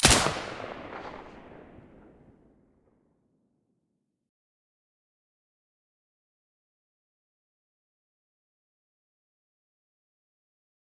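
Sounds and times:
silenced gunshot: 0.0 - 2.3.

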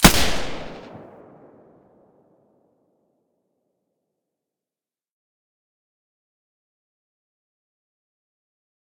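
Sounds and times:
G36 firing with silencer in stereo: 0.0 - 1.6.

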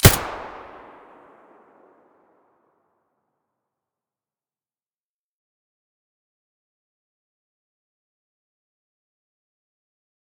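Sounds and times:
gun muzzle blast: 0.0 - 1.6.

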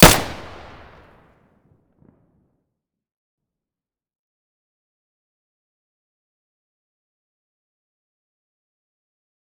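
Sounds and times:
weapon muzzle blasts: 0.0 - 1.0.

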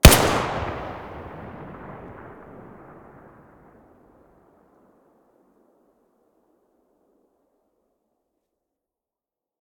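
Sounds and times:
TT-33 pistol muzzle blast: 0.0 - 3.4.

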